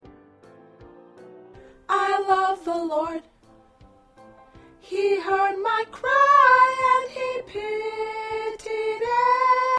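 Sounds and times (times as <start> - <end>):
choir with soprano: 1.9 - 3.3, 4.8 - 9.7.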